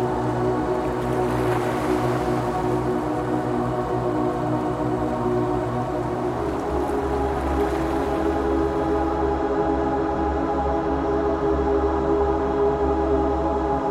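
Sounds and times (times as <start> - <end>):
gentle ocean waves: 0.0 - 9.4
gentle spiritual music with sustained low drones: 0.0 - 13.9.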